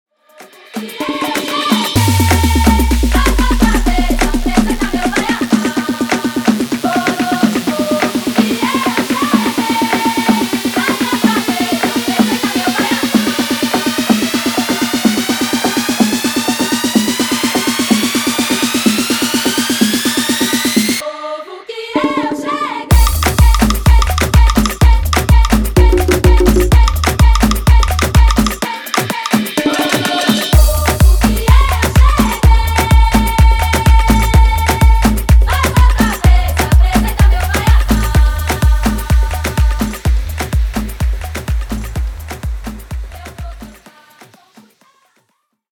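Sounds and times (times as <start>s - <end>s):
afro dance remix at 126 bpm: 0.2s - 45.6s.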